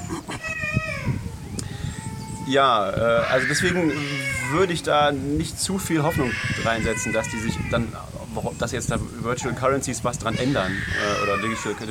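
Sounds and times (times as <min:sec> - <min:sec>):
speech: 0:00.1 - 0:00.3, 0:02.5 - 0:11.8
baby crying: 0:00.3 - 0:04.9, 0:06.0 - 0:08.0, 0:10.3 - 0:11.8.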